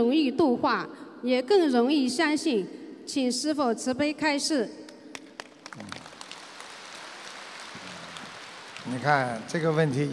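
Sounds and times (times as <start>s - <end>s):
speech: 0.0s - 4.9s, 8.9s - 10.1s
audience applauding: 5.2s - 10.1s.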